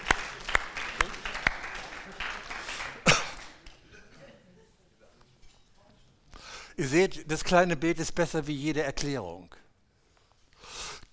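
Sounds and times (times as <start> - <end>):
audience applause: 0.0 - 3.7
speech: 6.8 - 9.6.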